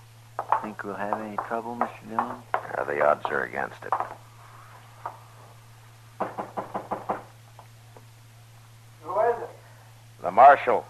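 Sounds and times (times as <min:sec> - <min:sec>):
low steady hum: 0:00.0 - 0:10.8
knocking on a door in an Old West radio drama: 0:00.4 - 0:04.2, 0:06.2 - 0:07.4
speech: 0:00.4 - 0:04.3, 0:10.4 - 0:10.8.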